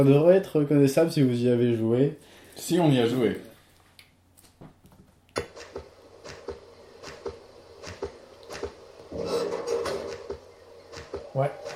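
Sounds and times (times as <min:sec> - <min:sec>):
speech: 0:00.0 - 0:03.5, 0:11.4 - 0:11.6
video game door sound effect: 0:05.3 - 0:11.7.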